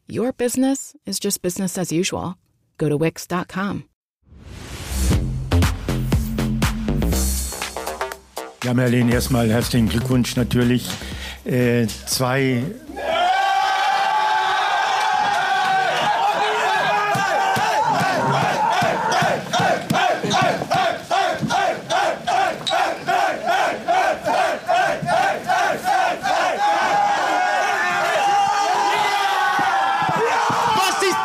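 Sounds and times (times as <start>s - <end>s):
speech: 0.1s - 3.9s, 8.6s - 13.1s
rhythmic claps or stomps: 5.5s - 8.8s, 14.8s - 31.2s
football fans cheering and chanting at promotion celebration: 12.8s - 31.2s.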